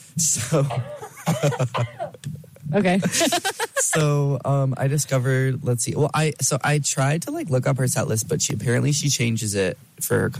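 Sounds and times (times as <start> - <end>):
speech: 0.2 - 10.3
laughter: 0.4 - 2.2, 3.0 - 4.2
person coughing into a studio microphone: 0.4 - 2.2.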